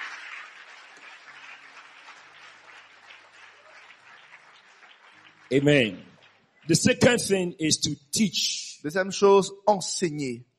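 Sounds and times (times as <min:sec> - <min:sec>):
audience applauding: 0:00.0 - 0:07.2
speech: 0:05.5 - 0:06.1, 0:06.7 - 0:10.5.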